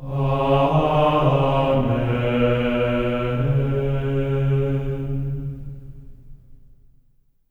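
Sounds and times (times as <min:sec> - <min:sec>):
choir of voices singing amen on C sharp 4: 0:00.0 - 0:05.6.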